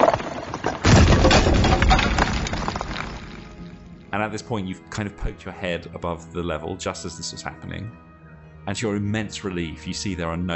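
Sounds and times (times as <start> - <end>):
heavy chunk of masonry crashing down: 0.0 - 4.3
speech: 4.1 - 8.1, 8.7 - 10.5.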